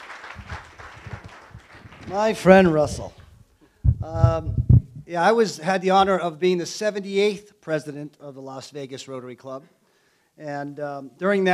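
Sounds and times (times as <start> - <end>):
audience applause: 0.0 - 3.2
speech: 2.1 - 3.2, 4.0 - 9.8, 10.4 - 11.5.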